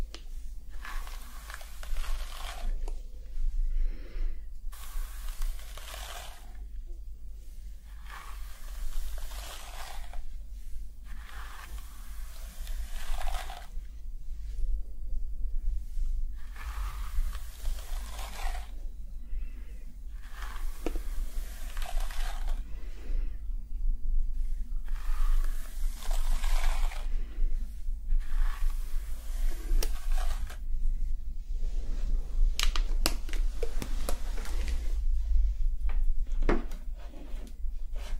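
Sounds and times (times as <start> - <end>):
constant low hum: 0.1 - 38.0
scalp massage and hair washing scrubbing strokes: 0.3 - 3.0, 4.7 - 6.7, 7.4 - 14.6, 16.0 - 18.8, 19.4 - 23.0, 24.4 - 30.8.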